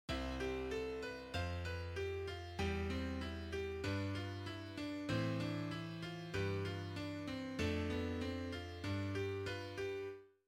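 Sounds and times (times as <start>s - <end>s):
counterpoint a4: 0.1s - 10.1s.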